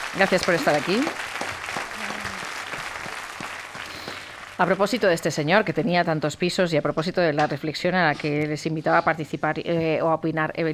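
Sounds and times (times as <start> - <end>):
audience applause: 0.0 - 4.9
speech: 0.1 - 1.4, 4.6 - 10.7.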